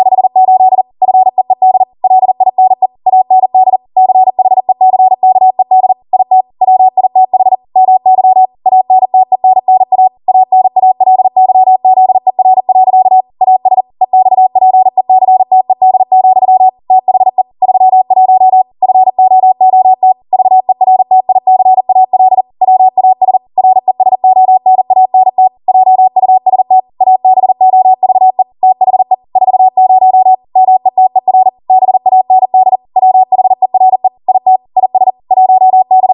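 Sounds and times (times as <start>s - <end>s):
Morse code practice beeps: 0.0s - 36.1s.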